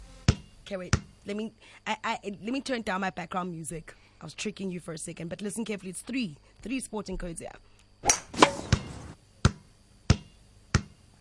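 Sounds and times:
basketball bouncing on a hard surface: 0.3s - 1.1s, 8.4s - 11.0s
speech: 0.7s - 8.6s.

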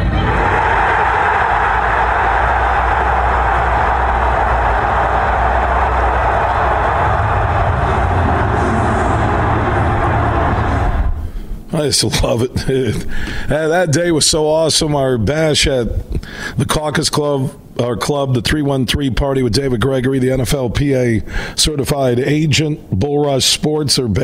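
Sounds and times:
large crowd cheering after a draft pick: 0.2s - 11.3s
speech: 11.8s - 24.2s.

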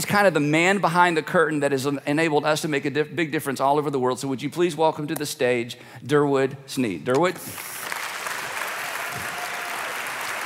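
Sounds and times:
speech: 0.0s - 7.8s
audience clapping as a speaker is welcomed to the stage: 7.5s - 10.4s
person whooping in the audience: 8.7s - 10.2s.

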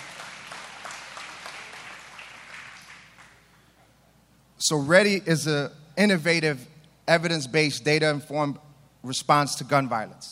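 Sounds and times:
audience applause: 0.0s - 3.4s
speech: 4.6s - 10.3s.

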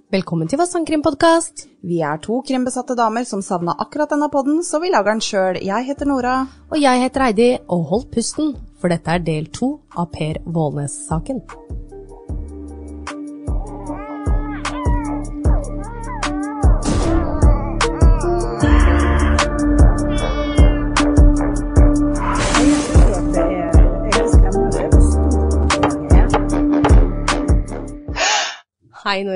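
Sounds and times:
speech: 0.1s - 11.8s, 29.0s - 29.3s
musical intro with wavering cry-like tones: 15.0s - 28.3s
judge's gavel knocking: 25.7s - 27.0s.

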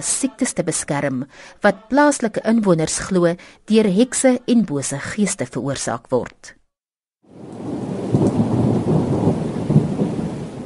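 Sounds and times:
speech: 0.0s - 6.6s
heavy rain: 7.3s - 10.6s
low thunder rumbling: 7.3s - 10.6s.

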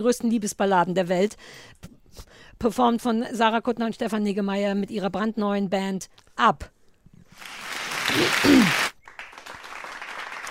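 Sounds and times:
speech: 0.0s - 6.8s, 7.4s - 8.9s
small audience applause: 7.4s - 10.4s.

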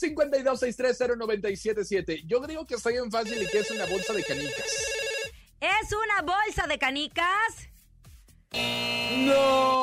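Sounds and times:
speech: 0.0s - 7.7s, 8.5s - 9.8s
telephone ringing for incoming call: 3.2s - 5.4s.

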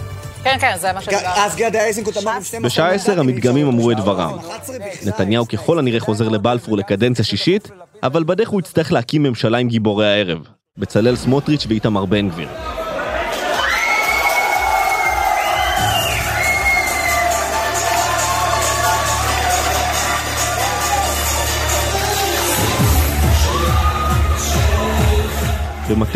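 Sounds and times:
speech: 0.4s - 12.8s, 26.0s - 26.1s
crowd of party activists cheering election victory: 12.4s - 26.1s.

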